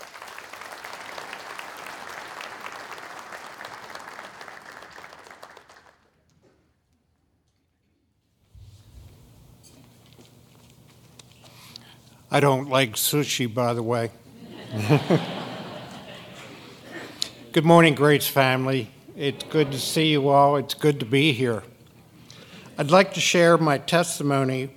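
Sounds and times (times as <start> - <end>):
church congregation applauding to welcome a speaker at a service: 0.0 - 6.2
speech: 12.3 - 15.3, 17.5 - 21.7, 22.8 - 24.7
laughter: 14.3 - 17.5, 19.1 - 20.7.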